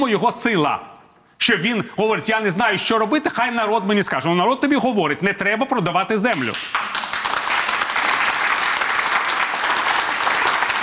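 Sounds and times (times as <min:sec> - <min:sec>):
speech: 0:00.0 - 0:06.9
audience applause: 0:06.7 - 0:10.8.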